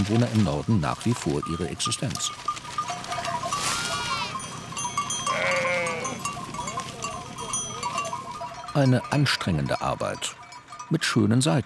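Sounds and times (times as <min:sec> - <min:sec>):
speech: 0:00.0 - 0:02.6, 0:08.8 - 0:11.6
large herd of livestock bleating on farmland: 0:02.9 - 0:08.0.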